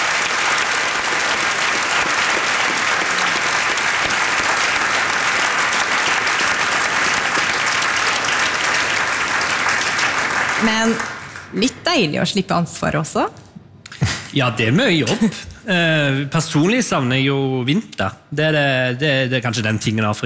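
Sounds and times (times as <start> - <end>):
audience applause: 0.0 - 11.6
speech: 10.8 - 13.4, 14.3 - 20.2.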